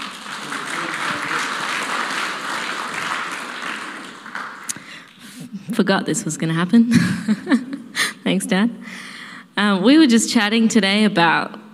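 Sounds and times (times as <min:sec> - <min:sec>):
crowd applauding: 0:00.0 - 0:05.1
speech: 0:05.8 - 0:07.7, 0:08.3 - 0:09.0, 0:09.6 - 0:11.6
laughter: 0:06.9 - 0:07.9.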